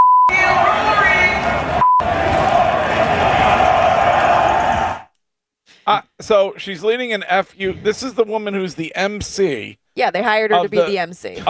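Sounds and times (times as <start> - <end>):
censor beeps: 0.0 - 2.1
crowd chanting in unison: 0.3 - 5.1
speech: 6.3 - 11.4.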